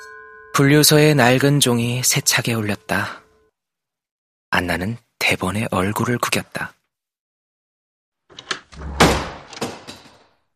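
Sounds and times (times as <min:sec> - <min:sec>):
speech: 0:00.6 - 0:03.2, 0:04.6 - 0:06.8
old door bursting open: 0:08.4 - 0:10.2.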